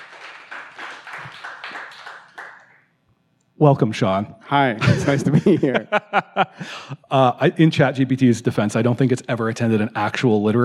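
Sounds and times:
audience applause: 0.0 - 2.8
speech: 3.6 - 10.6
laughter: 4.8 - 7.1.

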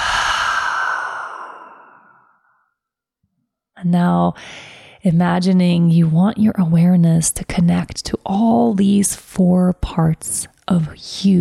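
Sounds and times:
long breath out through the mouth during a guided breathing exercise: 0.0 - 2.5
speech: 3.8 - 11.4.

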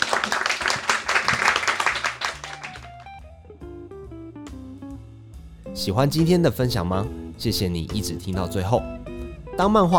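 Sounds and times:
audience applause: 0.0 - 3.1
speech: 5.8 - 9.0, 9.6 - 9.9.

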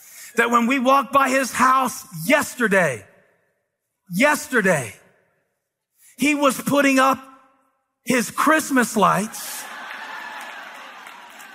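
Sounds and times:
speech: 0.3 - 3.1, 4.1 - 5.0, 6.2 - 7.3, 8.0 - 9.7
audience clapping: 9.3 - 11.5.

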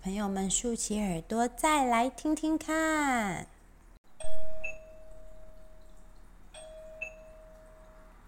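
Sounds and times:
speech: 0.0 - 3.5
doorbell ding-dong: 4.2 - 5.8, 6.6 - 8.1.

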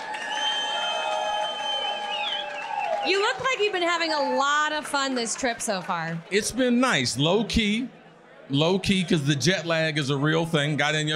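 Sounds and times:
crowd applause and cheering: 0.0 - 7.8
speech: 3.0 - 11.1.

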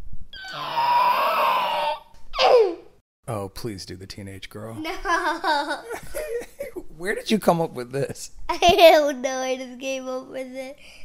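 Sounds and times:
child imitating a raptor call: 0.4 - 2.8
speech: 3.4 - 11.0.

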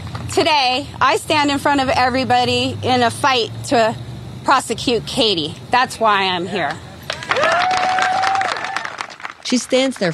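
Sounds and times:
speech: 0.4 - 7.7, 9.5 - 10.1
crowd clapping and cheering: 7.0 - 10.1
loud sustained whoop: 7.2 - 9.1.

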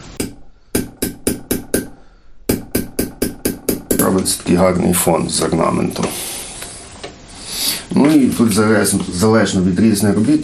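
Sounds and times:
hammer tapping an ornamental punch: 0.2 - 4.2
speech: 4.2 - 6.4, 7.9 - 10.4.

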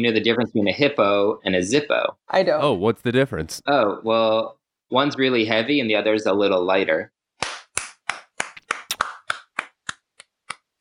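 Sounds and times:
speech: 0.0 - 7.2
hand clapping: 7.4 - 10.7.

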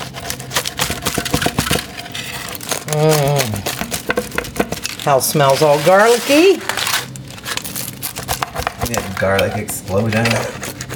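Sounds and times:
vegetarian pizza being cut: 0.0 - 10.9
person humming: 2.8 - 3.8
speech: 2.9 - 3.3, 5.0 - 6.7, 8.9 - 10.6.

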